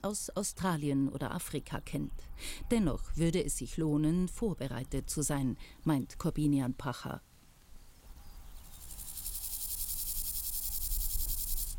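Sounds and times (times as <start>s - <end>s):
speech: 0.0s - 7.3s
grasshoppers chirping: 8.6s - 11.7s.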